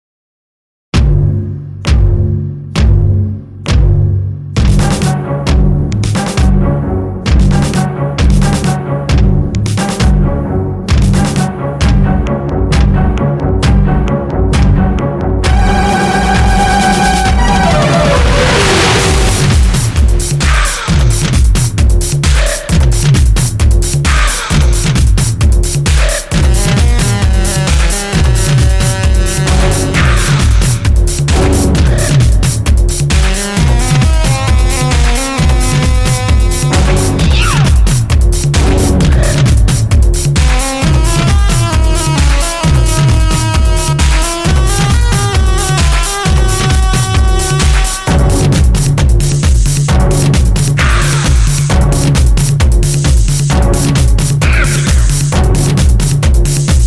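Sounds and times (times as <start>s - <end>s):
instrumental dance music: 1.0s - 56.8s.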